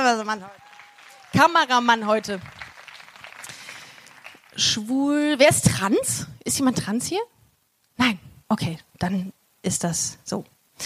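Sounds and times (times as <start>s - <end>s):
speech: 0.0s - 0.6s, 1.3s - 2.6s, 4.6s - 7.4s, 8.0s - 10.8s
audience applause: 0.4s - 4.7s.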